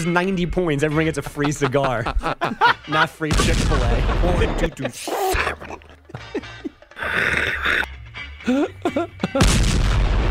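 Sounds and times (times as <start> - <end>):
speech: 0.0 - 6.3, 8.5 - 9.9
laughter: 0.9 - 9.5
cannon firing sound effect: 3.3 - 4.6, 9.4 - 10.2.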